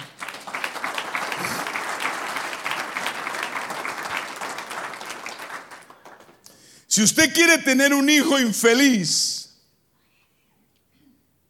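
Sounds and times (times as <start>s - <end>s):
audience applause: 0.0s - 6.4s
speech: 7.0s - 9.4s.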